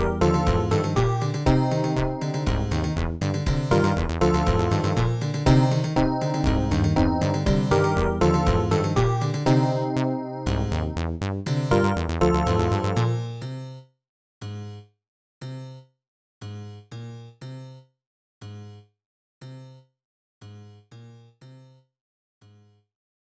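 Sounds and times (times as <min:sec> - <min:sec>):
Roland SC-88 sound module music: 0:00.0 - 0:13.3.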